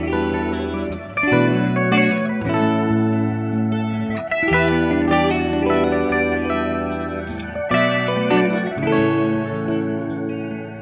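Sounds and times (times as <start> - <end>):
guitar loops at 75 BPM in B minor: 0.0 - 10.8.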